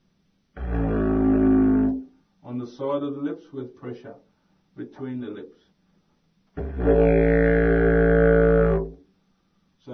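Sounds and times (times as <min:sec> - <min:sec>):
didgeridoo: 0:00.6 - 0:02.1, 0:06.6 - 0:09.0.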